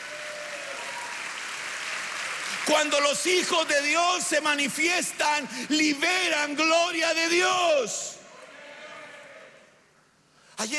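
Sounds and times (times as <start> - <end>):
audience clapping: 0.0 - 5.5
speech: 2.7 - 8.2, 10.6 - 10.7.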